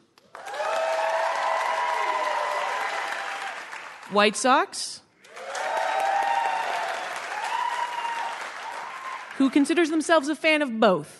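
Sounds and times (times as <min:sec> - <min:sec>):
scattered cheers and whoops: 0:00.3 - 0:03.9, 0:05.3 - 0:09.4
room full of people applauding: 0:00.3 - 0:04.1, 0:05.2 - 0:09.7
speech: 0:04.1 - 0:05.0, 0:09.4 - 0:11.1.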